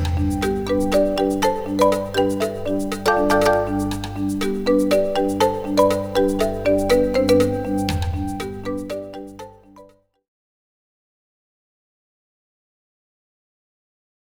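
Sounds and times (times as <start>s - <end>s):
funk music: 0.0s - 9.5s.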